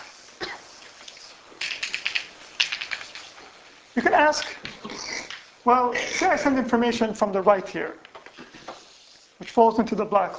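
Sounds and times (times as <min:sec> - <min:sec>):
speech: 0:04.0 - 0:08.0, 0:09.6 - 0:10.3
drawing a diagram on a board: 0:08.6 - 0:09.3.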